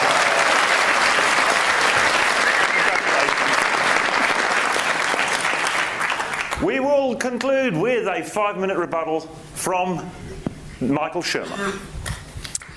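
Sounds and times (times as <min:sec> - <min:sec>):
audience applause: 0:00.0 - 0:06.7
speech: 0:06.6 - 0:11.9.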